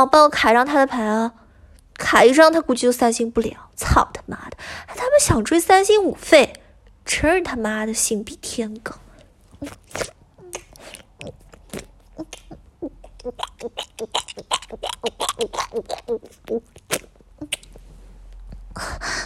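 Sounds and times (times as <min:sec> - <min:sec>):
speech: 0:00.0 - 0:01.4, 0:02.0 - 0:09.0, 0:09.6 - 0:10.2, 0:11.2 - 0:17.1, 0:18.8 - 0:19.2
crunchy chewing of a snack: 0:09.5 - 0:17.8.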